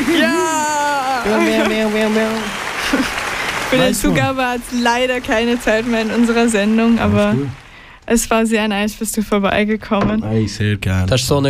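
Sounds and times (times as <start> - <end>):
laughter: 0.0 - 4.4, 5.6 - 7.6
loud applause: 0.0 - 8.0
speech: 1.3 - 11.4.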